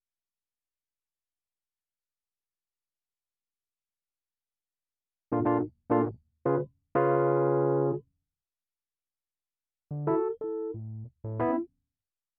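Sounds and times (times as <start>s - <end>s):
keyboard music: 5.3s - 8.0s, 9.9s - 11.6s.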